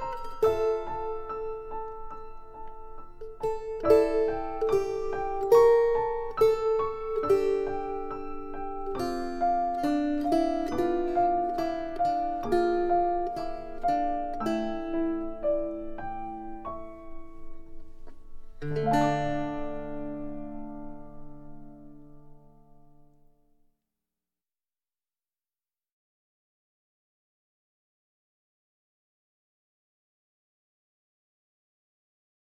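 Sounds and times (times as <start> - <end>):
piano: 0.0 - 23.3
guitar: 0.0 - 23.4.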